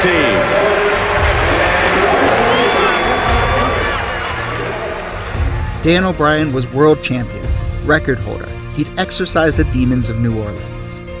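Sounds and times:
huge stadium crowd cheering: 0.0s - 7.1s
whistles: 2.2s - 4.2s
speech: 5.8s - 10.8s.

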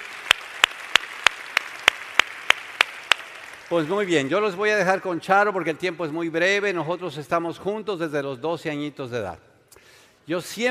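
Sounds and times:
audience applause for first-time attendees: 0.0s - 4.5s
speech: 3.7s - 9.5s, 10.3s - 10.6s.

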